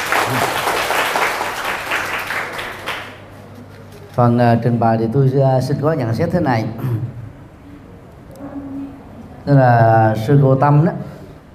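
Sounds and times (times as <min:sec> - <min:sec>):
group applause: 0:00.0 - 0:03.3
speech: 0:00.3 - 0:00.6, 0:04.2 - 0:07.2, 0:09.5 - 0:11.1.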